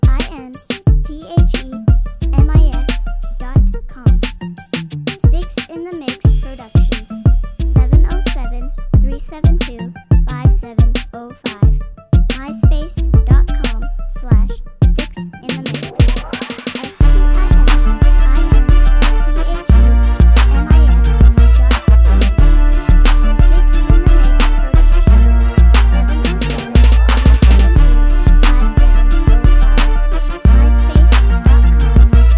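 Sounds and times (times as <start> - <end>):
mute crunk beat: 0.0 - 32.3.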